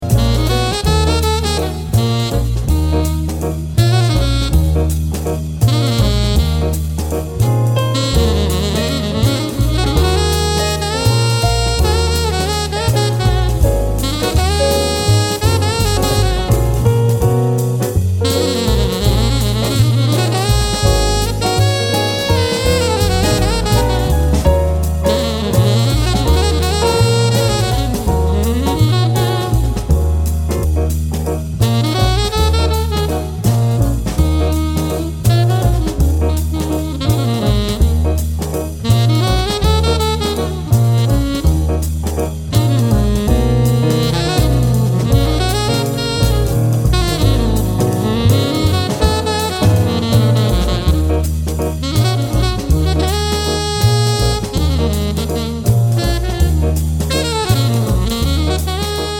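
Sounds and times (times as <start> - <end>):
saxophone: 0.0 - 59.1.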